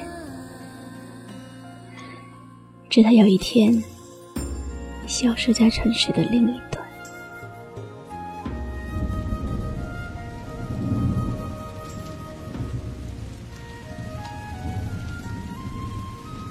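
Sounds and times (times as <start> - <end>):
rain: 0.0 - 16.4
speech: 2.9 - 3.9, 5.1 - 6.7
thunder: 8.5 - 16.4.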